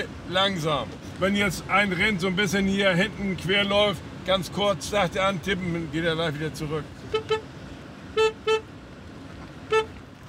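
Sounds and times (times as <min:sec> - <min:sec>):
speech: 0:00.0 - 0:07.5
car horn honks: 0:07.0 - 0:08.7, 0:09.7 - 0:10.0.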